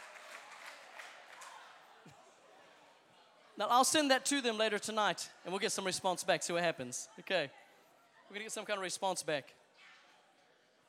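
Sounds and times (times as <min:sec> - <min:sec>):
small group applauding: 0:00.0 - 0:01.8
murmur of voices: 0:00.0 - 0:10.8
speech: 0:03.6 - 0:07.6, 0:08.3 - 0:09.6.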